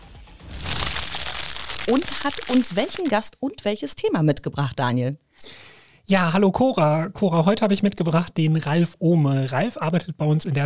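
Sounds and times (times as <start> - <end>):
rustling in a snack bag: 0.5 - 3.3
speech: 1.9 - 10.6.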